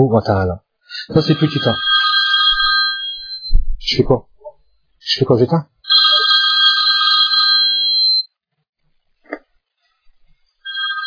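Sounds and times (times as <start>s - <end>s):
speech: 0.0s - 2.2s, 3.9s - 4.3s, 5.1s - 5.7s
mobile phone ringtone during a talk: 1.1s - 3.5s, 5.9s - 8.3s, 10.6s - 11.0s.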